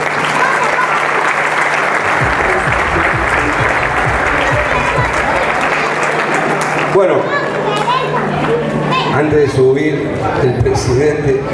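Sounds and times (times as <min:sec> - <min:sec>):
audience applause: 0:00.0 - 0:08.8
speech: 0:07.0 - 0:07.3, 0:09.2 - 0:11.5.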